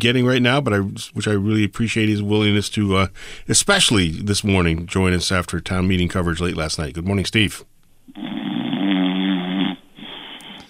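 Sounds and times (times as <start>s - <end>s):
speech: 0.0s - 8.3s
person imitating snoring: 8.1s - 10.6s.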